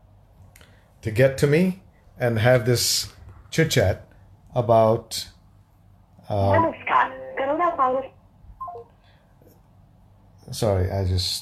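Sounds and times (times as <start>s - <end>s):
speech: 1.0s - 5.4s, 6.3s - 7.0s, 7.8s - 8.2s, 10.5s - 11.4s
telephone tones from a call placed by mistake: 8.6s - 8.9s.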